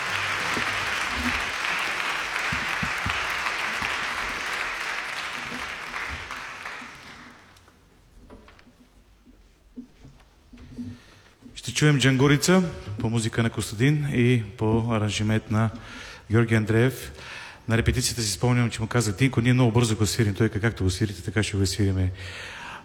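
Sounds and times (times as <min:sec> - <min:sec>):
audience applause: 0:00.0 - 0:07.6
speech: 0:11.8 - 0:22.8.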